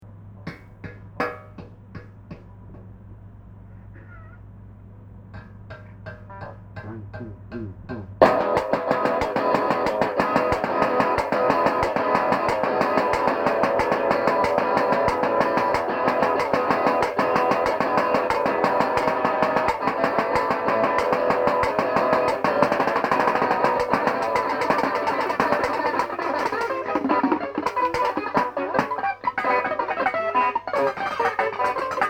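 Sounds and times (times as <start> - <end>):
rock and roll music: 8.2 - 32.0.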